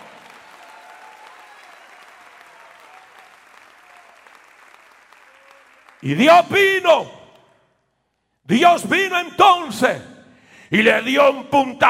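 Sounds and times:
audience applauding: 0.0s - 6.3s
speech: 6.0s - 7.2s, 8.5s - 10.1s, 10.7s - 11.8s.

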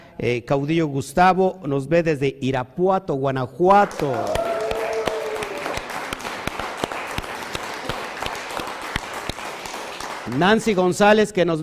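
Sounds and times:
speech: 0.2s - 4.4s, 10.3s - 11.6s
audience applause: 3.8s - 10.8s.

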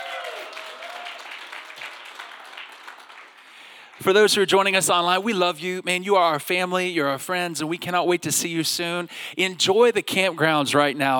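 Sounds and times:
congregation clapping at a church service at a civic center: 0.0s - 5.4s
speech: 4.0s - 11.1s.

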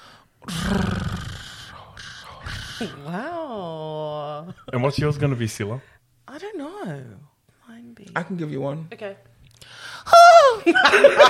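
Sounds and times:
person imitating a cat's purr: 0.5s - 4.4s
speech: 2.8s - 6.0s, 8.2s - 9.3s, 10.1s - 11.2s
laughter: 10.4s - 11.2s.

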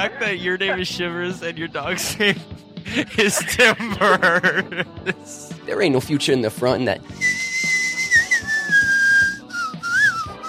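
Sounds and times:
speech: 0.0s - 7.4s
laughter: 2.0s - 5.4s
person whistling a song melody: 7.2s - 10.4s.

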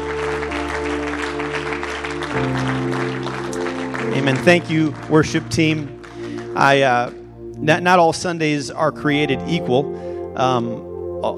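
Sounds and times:
audience clapping hands: 0.0s - 7.2s
speech: 4.2s - 6.0s, 6.6s - 11.3s.

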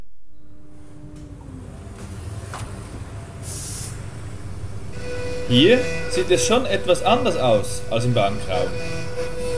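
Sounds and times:
woodworking machine room drone: 0.0s - 9.5s
hissing air burst: 3.4s - 4.2s
speech: 5.5s - 9.1s.

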